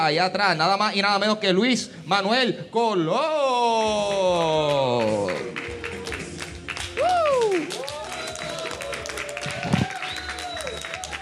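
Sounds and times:
speech: 0:00.0 - 0:05.5
small group clapping: 0:03.9 - 0:11.2
rising and falling whoops or whistles: 0:07.0 - 0:11.2.

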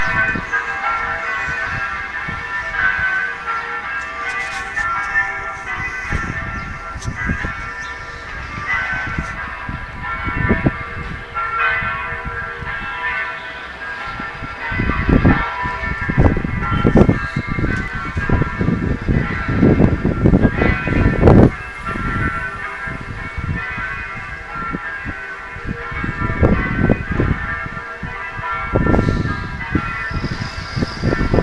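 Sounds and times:
joyous pealing of bells from Marsaskala parish church: 0:00.0 - 0:31.4.

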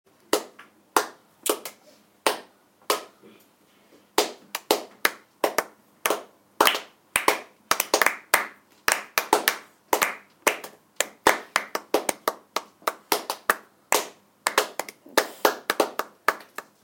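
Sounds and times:
clapping: 0:04.2 - 0:16.8.

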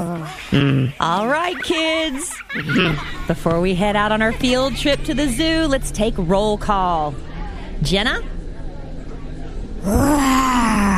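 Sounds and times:
laughter: 0:00.0 - 0:03.6
speech: 0:00.3 - 0:08.3, 0:09.8 - 0:10.1
child imitating a lion roar: 0:09.8 - 0:10.9.

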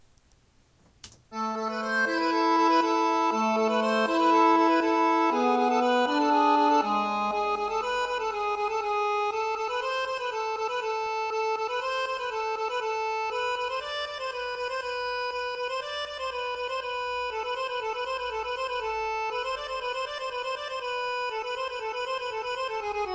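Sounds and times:
Finnish tango music: 0:01.4 - 0:23.1.

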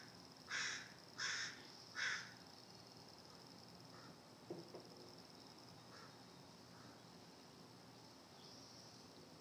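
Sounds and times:
baby crows calling from nest: 0:00.0 - 0:02.4, 0:05.9 - 0:07.0
soft high hiss: 0:00.0 - 0:09.3.

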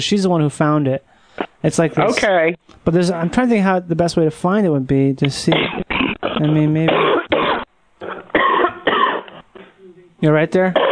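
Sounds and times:
speech: 0:00.0 - 0:05.8, 0:06.4 - 0:07.1, 0:10.2 - 0:10.9
person with acute bronchitis coughing: 0:05.5 - 0:09.7.

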